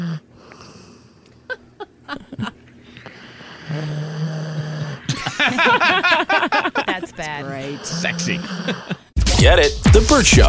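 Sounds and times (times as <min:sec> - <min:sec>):
dog snoring: 0:00.0 - 0:01.0, 0:03.5 - 0:05.1, 0:07.4 - 0:09.1
laughter: 0:01.5 - 0:02.6, 0:05.1 - 0:09.2
speech: 0:07.2 - 0:10.4.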